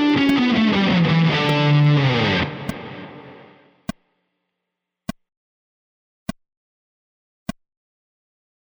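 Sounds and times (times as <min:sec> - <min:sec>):
guitar playing slow scales with rhythmic variations: 0:00.0 - 0:03.8.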